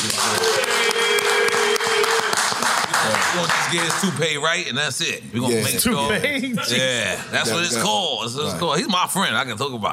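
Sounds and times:
audience clapping: 0.0 - 4.5
speech: 3.3 - 9.9.

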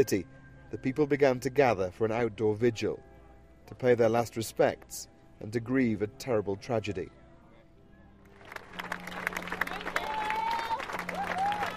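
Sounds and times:
speech: 0.0 - 3.1, 3.7 - 7.2
crowd applause at outdoor vigil: 8.3 - 11.7.

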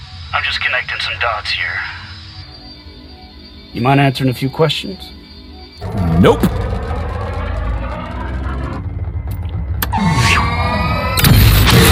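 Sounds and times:
speech: 0.4 - 2.1, 3.7 - 5.2, 5.8 - 6.7
spaceship sublight thrusters firing as the ship speeds away: 5.8 - 11.9.

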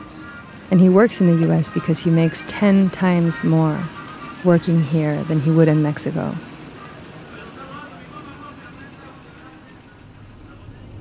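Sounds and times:
car driving west along a border wall: 0.0 - 10.9
speech: 0.7 - 6.5.

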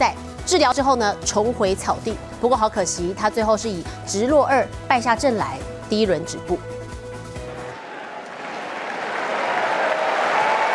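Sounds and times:
speech: 0.0 - 6.7
spectators applauding: 7.8 - 10.7.

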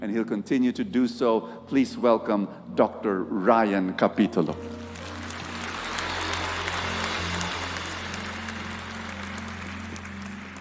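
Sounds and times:
speech: 0.0 - 4.8
audience applause: 4.5 - 10.5.

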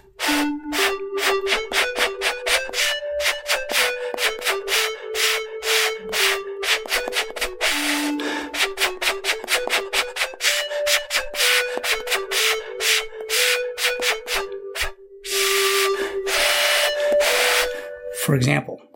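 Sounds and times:
phone ocarina app melody: 0.0 - 18.9
speech: 18.3 - 18.9.

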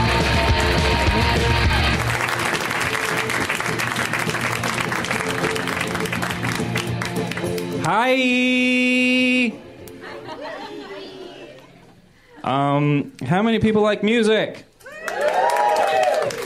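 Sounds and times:
live audience applause and cheering for comedian: 0.0 - 7.9, 14.8 - 16.4
speech: 7.9 - 9.6, 12.5 - 14.7
laughter: 9.9 - 12.5.

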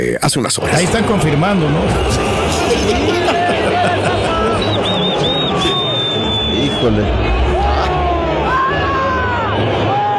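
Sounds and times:
speech: 0.1 - 4.9, 6.8 - 7.6
huge crowd booing: 0.6 - 10.1
laughter: 0.8 - 8.2
shrill whistles: 4.5 - 7.2.

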